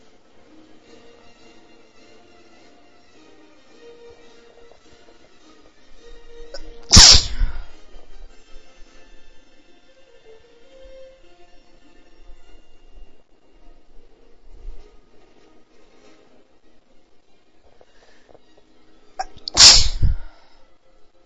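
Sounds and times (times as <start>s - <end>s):
female galactic sneezes: 6.6s - 7.8s, 19.2s - 20.3s.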